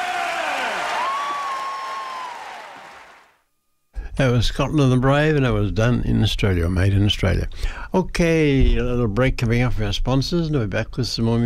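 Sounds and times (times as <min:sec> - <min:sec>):
audience applause: 0:00.0 - 0:03.4
speech: 0:04.2 - 0:11.4.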